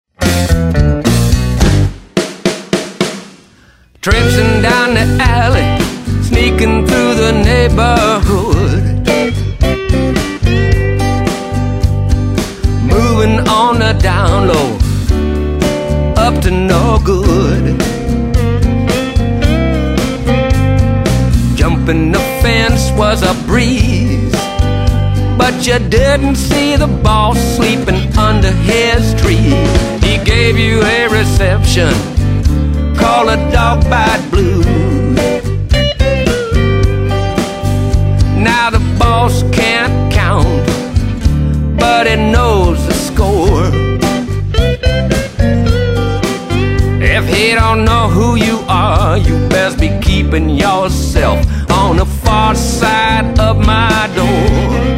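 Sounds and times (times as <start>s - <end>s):
blues music: 0.1s - 54.9s.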